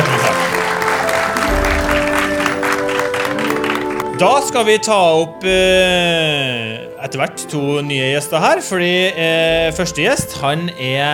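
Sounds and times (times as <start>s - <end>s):
audience applause at a Norwegian industry event: 0.0s - 6.1s
sustained musical tones: 0.0s - 11.1s
speech: 4.2s - 11.1s.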